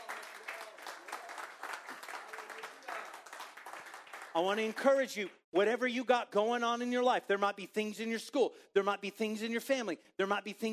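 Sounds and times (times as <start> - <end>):
audience clapping hands: 0.0 - 5.4
speech: 4.4 - 10.7.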